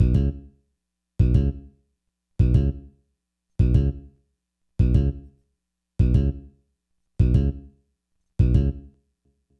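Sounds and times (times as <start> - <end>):
bass: 0.0 - 0.6, 1.2 - 1.8, 2.4 - 3.0, 3.6 - 4.2, 4.8 - 5.4, 6.0 - 6.6, 7.2 - 7.8, 8.4 - 9.0.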